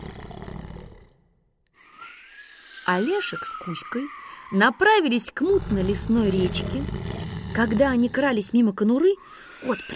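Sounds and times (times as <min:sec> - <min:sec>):
loud snoring: 0:00.0 - 0:01.4, 0:05.5 - 0:08.6
speech: 0:02.9 - 0:07.0, 0:07.6 - 0:09.9.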